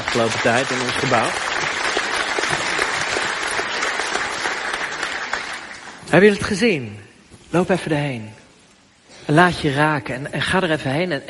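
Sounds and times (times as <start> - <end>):
audience applause: 0.0 - 6.0
speech: 0.2 - 1.6, 6.1 - 8.4, 9.3 - 11.2.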